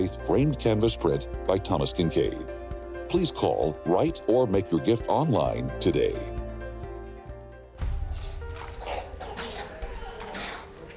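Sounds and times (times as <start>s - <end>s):
speech: 0.0s - 6.4s
children's deep chest coughing: 8.2s - 10.8s.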